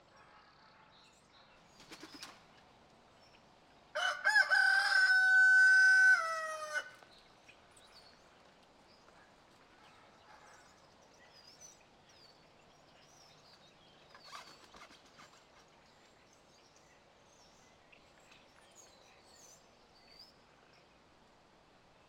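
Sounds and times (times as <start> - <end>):
rooster crowing on a farm near a barn in the countryside: 4.0 - 7.0.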